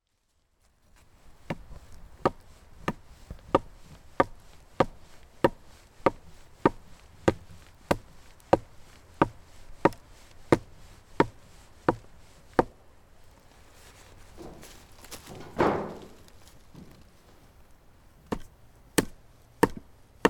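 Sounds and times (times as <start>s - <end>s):
stake driving in Banshu forest: 0.9s - 20.2s.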